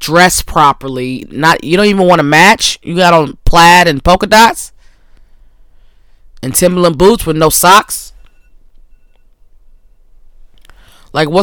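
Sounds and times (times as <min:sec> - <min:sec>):
speech: 0:00.0 - 0:04.7, 0:06.4 - 0:08.1, 0:11.1 - 0:11.4
electronic alarm beeping from a phone or clock: 0:08.2 - 0:10.2.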